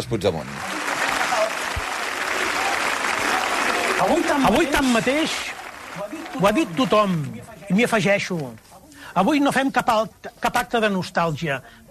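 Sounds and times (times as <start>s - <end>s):
speech: 0.0s - 0.7s, 4.0s - 11.9s
dense applause from a large audience: 0.0s - 8.6s.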